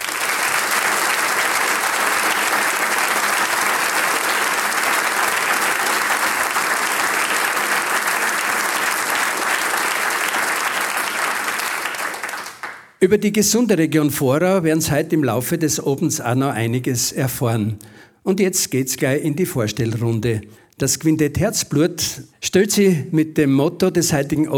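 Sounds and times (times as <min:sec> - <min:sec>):
audience applause in hall: 0:00.0 - 0:13.0
speech: 0:13.0 - 0:24.5.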